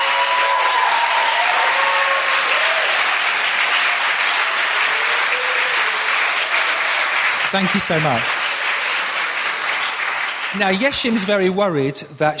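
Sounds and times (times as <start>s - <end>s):
audience applause: 0.0s - 11.6s
speech: 7.5s - 8.4s, 10.5s - 12.3s.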